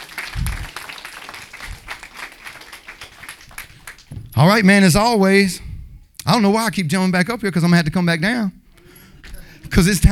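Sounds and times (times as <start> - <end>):
audience applause: 0.0 - 4.1
speech: 4.4 - 5.6, 6.3 - 8.6, 9.8 - 10.1.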